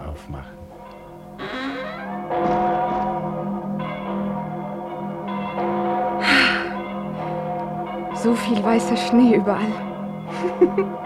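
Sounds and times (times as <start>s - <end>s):
church bells ringing in a steady peal: 0.0s - 11.0s
speech: 0.2s - 0.6s, 8.2s - 11.0s
person gasping: 6.2s - 6.8s
laughter: 10.3s - 10.9s.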